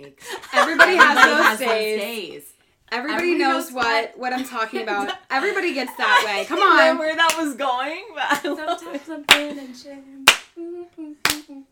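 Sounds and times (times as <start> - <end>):
speech: 0.0 - 11.7
laughter: 0.2 - 2.0
sharp hand claps: 7.3 - 7.5, 9.3 - 9.5, 10.2 - 10.6, 11.2 - 11.6
wordless voice humming or singing a tune: 10.0 - 11.7.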